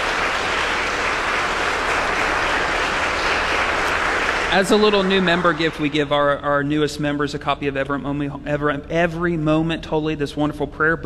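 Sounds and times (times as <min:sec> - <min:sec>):
audience applauding new member: 0:00.0 - 0:06.7
speech: 0:04.5 - 0:11.0.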